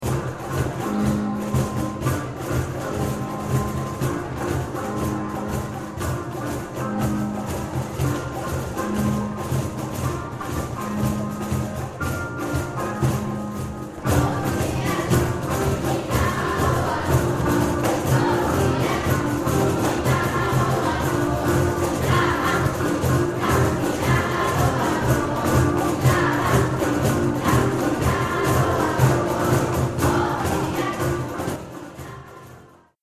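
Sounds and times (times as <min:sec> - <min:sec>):
drums: 0:00.0 - 0:32.9.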